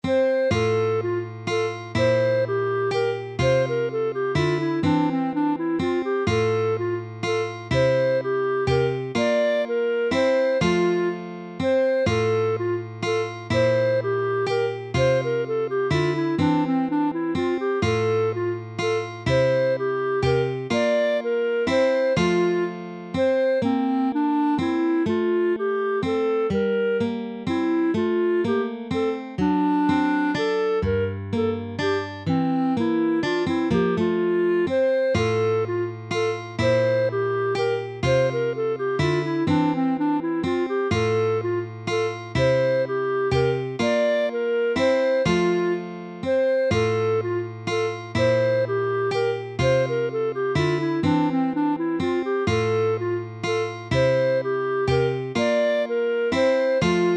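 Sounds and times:
waltz in F major: 0.0s - 57.1s.

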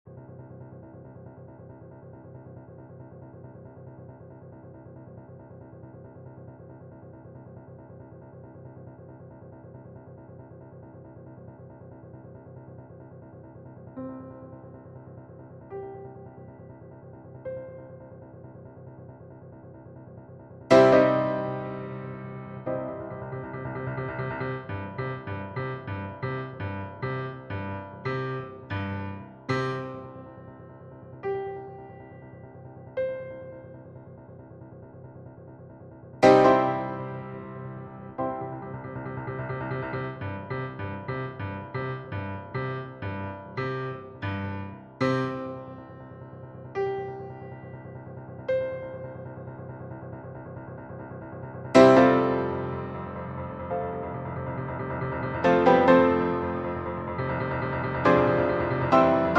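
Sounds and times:
piano duet: 20.7s - 34.2s, 36.2s - 59.3s.

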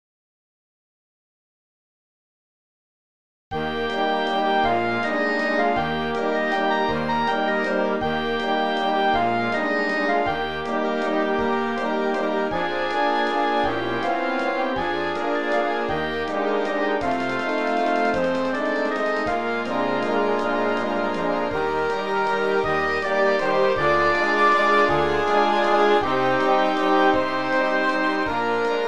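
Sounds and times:
waltz music: 3.6s - 28.8s.

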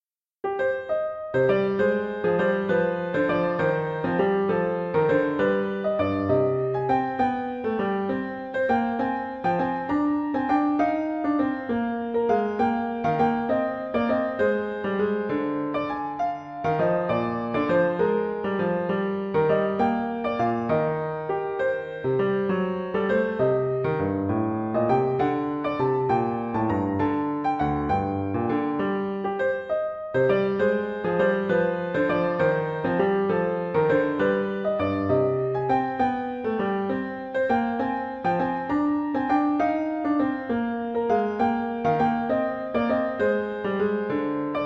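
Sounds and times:
sicilienne: 0.4s - 44.6s.

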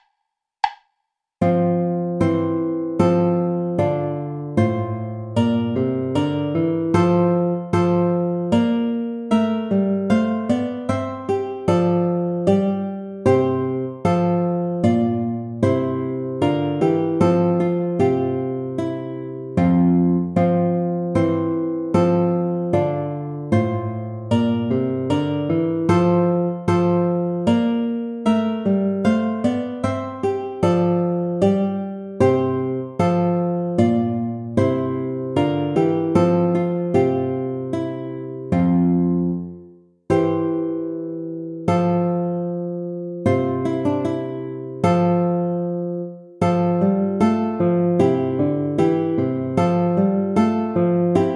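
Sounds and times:
play-along backing track without guitar: 0.6s - 51.3s.

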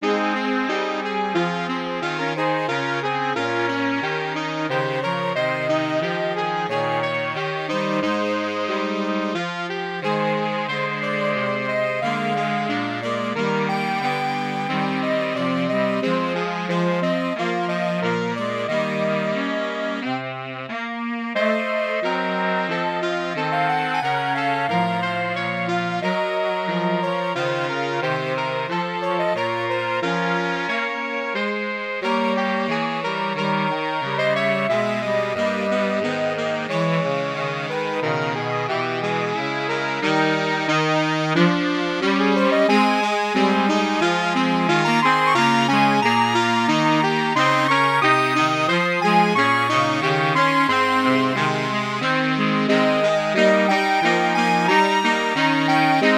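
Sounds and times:
saxophone quartet: 0.0s - 56.1s.

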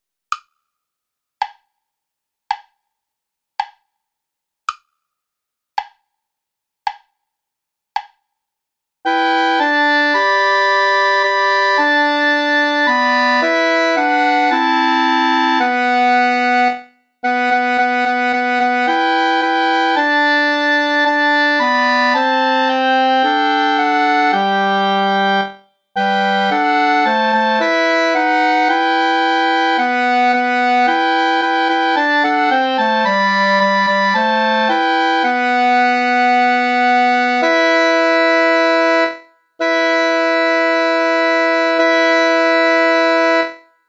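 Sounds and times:
play-along backing music without clarinet: 9.1s - 43.6s.

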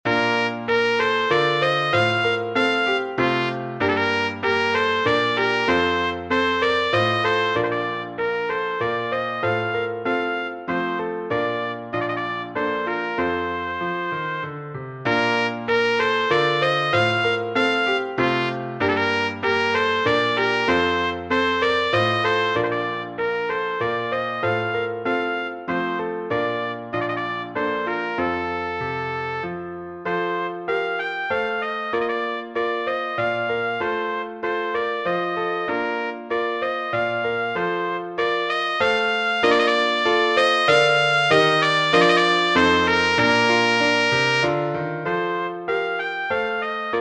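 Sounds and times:
minuet: 0.1s - 46.9s.

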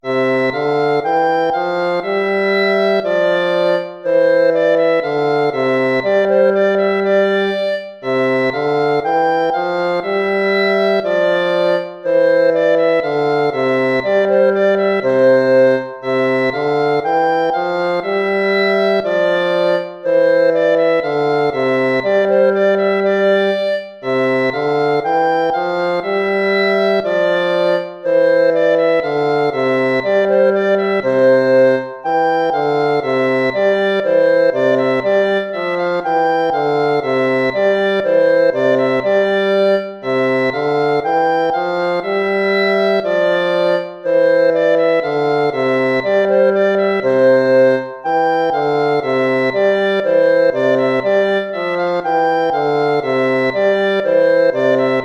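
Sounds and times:
gavotte music: 0.0s - 55.0s.

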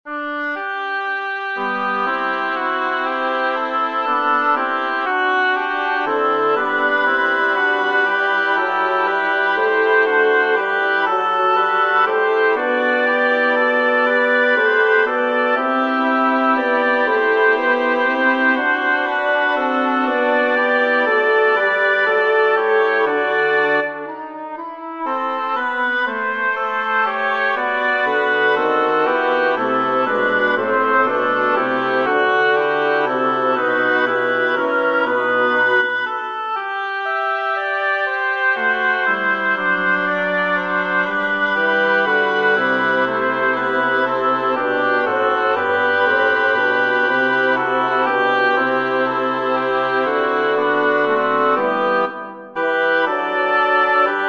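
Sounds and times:
double reed quartet playing a psalm: 0.1s - 54.2s.

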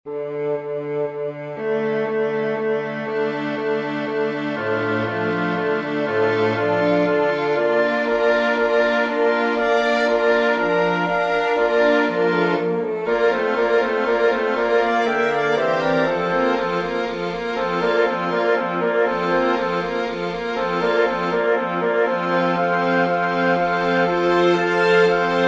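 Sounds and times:
strings: 0.1s - 25.4s
wind instruments: 0.1s - 25.4s.

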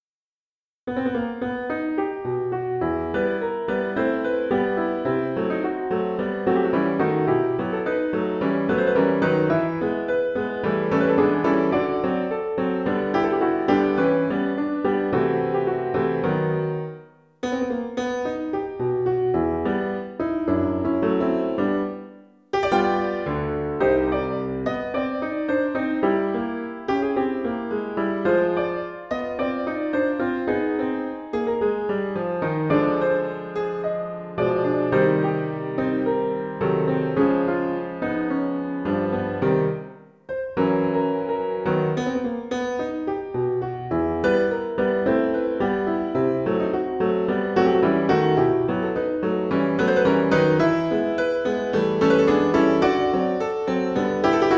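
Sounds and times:
tango music: 0.9s - 54.5s.

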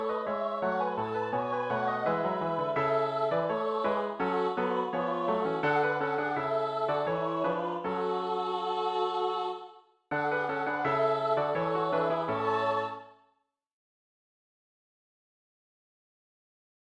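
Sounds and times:
Christmas carol: 0.0s - 13.2s.

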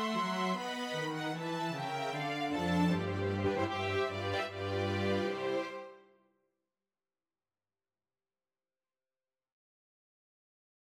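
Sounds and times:
wedding march music: 0.0s - 6.0s.

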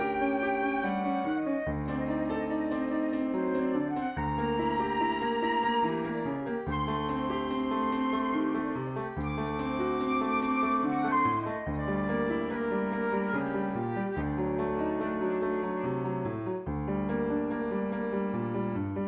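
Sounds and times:
flute: 0.0s - 17.4s
piano: 0.0s - 19.0s.

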